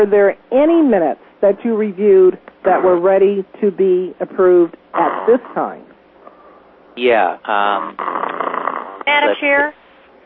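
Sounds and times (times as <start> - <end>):
speech: 0.0 - 5.9, 7.0 - 8.2, 9.0 - 9.8
low murmur: 5.3 - 9.6
sleeping person snoring: 7.5 - 9.4.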